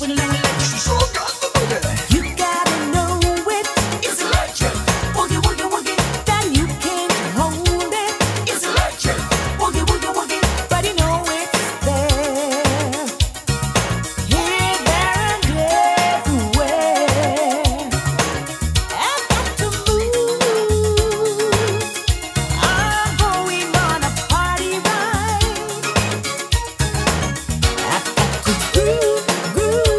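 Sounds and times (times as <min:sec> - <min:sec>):
reggae music: 0:00.0 - 0:29.9.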